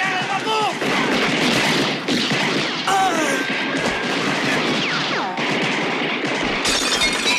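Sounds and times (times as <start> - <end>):
gunshots fired in a shootout from a balcony and upstairs windows: 0.0 - 7.3
shattering, breaking crashes: 6.6 - 7.3.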